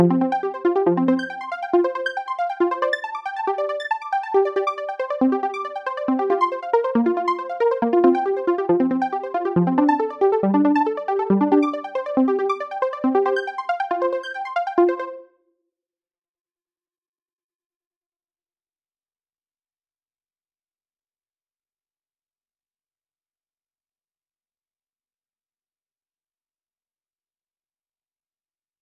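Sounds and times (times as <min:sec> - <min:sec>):
synth arpeggio, dry and wet: 0:00.0 - 0:15.2.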